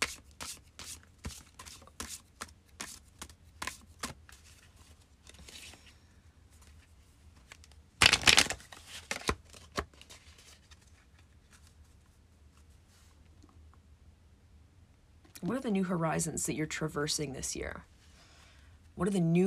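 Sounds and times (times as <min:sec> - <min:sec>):
goddess oracle card deck being shuffled: 0:00.0 - 0:05.9, 0:06.6 - 0:11.9
speech: 0:15.5 - 0:17.9, 0:19.0 - 0:19.4.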